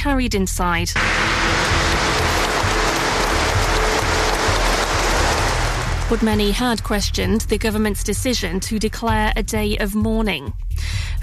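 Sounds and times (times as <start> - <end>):
speech: 0.0 - 2.2, 6.1 - 11.2
crowd of mourners applauding outside the cathedral in Milan: 1.0 - 7.3.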